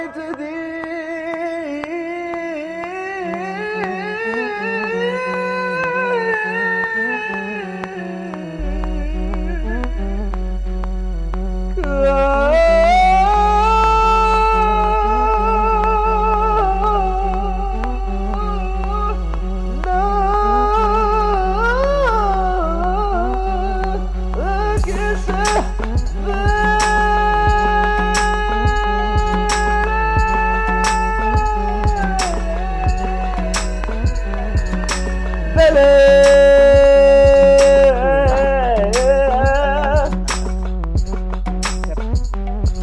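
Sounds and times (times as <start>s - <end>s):
live performance music from backstage loudspeakers: 0.0s - 42.8s.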